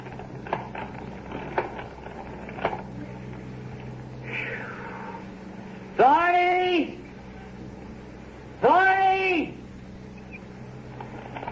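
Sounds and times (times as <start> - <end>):
rusty hand-cranked ice cream freezer creaking: 0.0 - 3.5, 10.9 - 11.5
low hum: 0.0 - 11.5
speech: 6.0 - 7.0.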